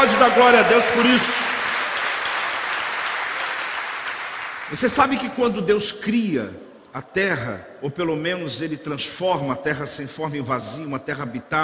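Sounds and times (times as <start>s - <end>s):
speech: 0.0s - 1.6s, 4.7s - 11.6s
audience applauding: 0.0s - 5.1s.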